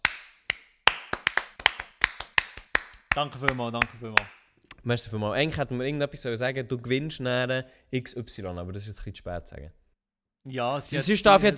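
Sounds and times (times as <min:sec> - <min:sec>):
clapping: 0:00.0 - 0:04.4
speech: 0:03.2 - 0:09.8, 0:10.4 - 0:11.5.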